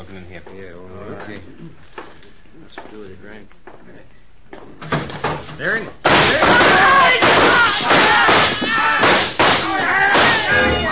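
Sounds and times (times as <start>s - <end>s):
speech: 0.1s - 2.0s, 2.8s - 7.9s
glass breaking: 6.0s - 10.8s
gunfire shootout: 6.1s - 10.4s.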